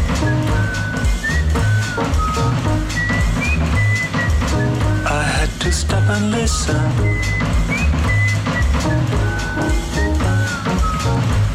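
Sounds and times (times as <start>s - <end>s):
person whistling a simple melody through an open window: 0.0s - 11.5s
speech: 6.2s - 7.4s.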